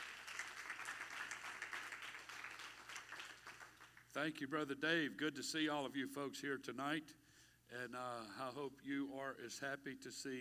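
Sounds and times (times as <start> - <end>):
audience clapping hands: 0.0 - 4.1
speech: 4.2 - 10.3.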